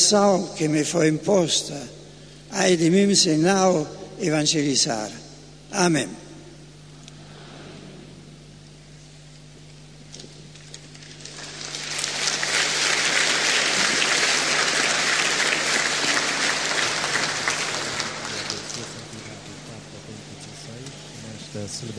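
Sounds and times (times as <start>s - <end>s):
speech: 0.1s - 6.2s
applause from celebration participants: 11.0s - 21.9s.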